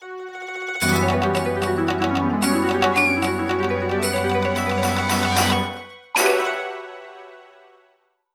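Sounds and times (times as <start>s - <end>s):
boss clear game jingle: 0.8s - 7.5s.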